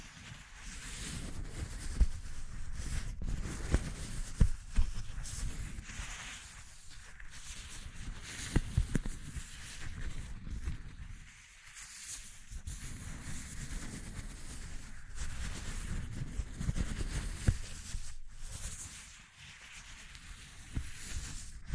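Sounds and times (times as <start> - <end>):
rustling and scratching: 0.0 - 21.7.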